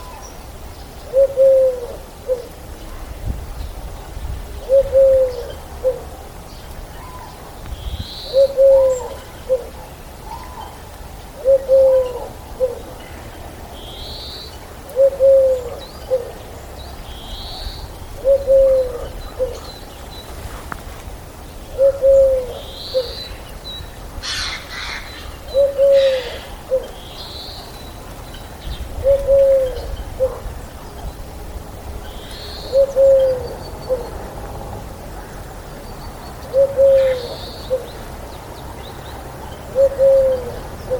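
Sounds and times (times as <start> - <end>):
Eurasian collared dove cooing: 1.0 - 2.6, 4.6 - 6.3, 8.2 - 13.2, 14.9 - 16.4, 17.4 - 20.7, 21.7 - 23.5, 24.2 - 28.0, 28.9 - 30.7, 32.1 - 35.3, 36.4 - 38.0, 39.6 - 40.9.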